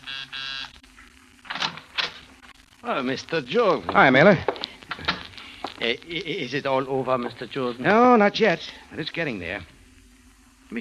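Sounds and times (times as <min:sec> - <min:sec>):
hotel door buzzer: 0:00.0 - 0:00.8
speech: 0:02.8 - 0:05.1, 0:05.8 - 0:09.7.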